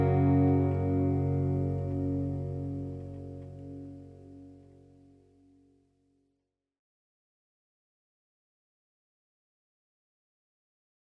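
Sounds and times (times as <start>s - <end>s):
instrumental music: 0.0s - 5.2s.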